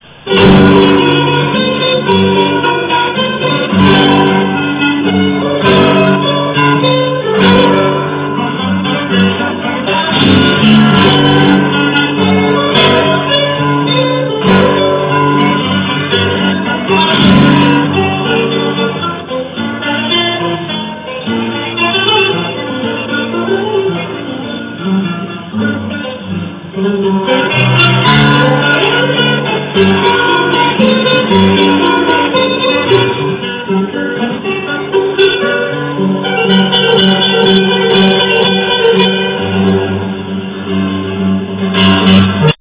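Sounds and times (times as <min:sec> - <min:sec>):
Sevilla-style guitar: 0:00.0 - 0:42.6.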